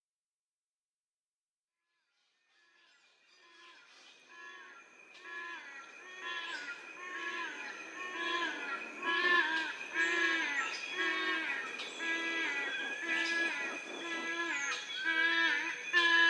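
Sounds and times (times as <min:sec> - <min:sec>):
yellow-casqued hornbill honking calls: 0:04.3 - 0:16.2.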